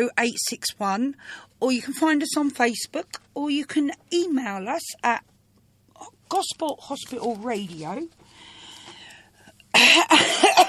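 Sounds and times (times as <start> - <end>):
speech: 0.0 - 5.3, 6.0 - 8.2
harsh cough: 9.8 - 10.6.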